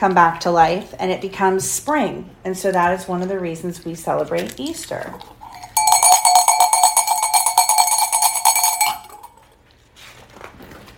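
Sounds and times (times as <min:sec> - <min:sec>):
speech: 0:00.0 - 0:05.4
bell ringing: 0:05.4 - 0:09.4.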